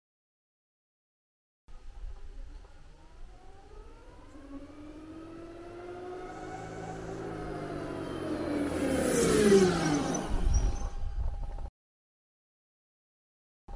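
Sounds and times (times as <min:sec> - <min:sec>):
slow speed sound: 0:02.1 - 0:11.7.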